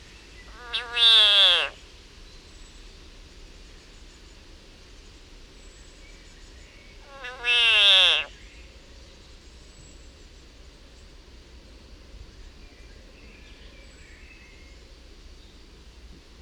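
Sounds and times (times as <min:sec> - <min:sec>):
frog screaming in agony: 0:00.5 - 0:01.8, 0:07.0 - 0:08.3.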